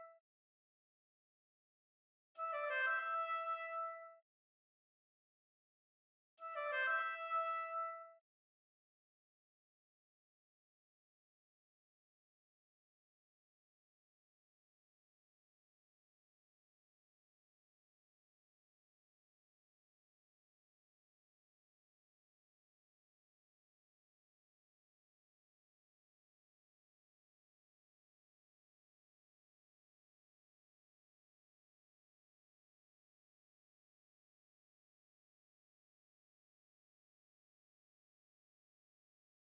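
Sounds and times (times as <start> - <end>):
oboe: 2.4 - 4.2, 6.4 - 8.2.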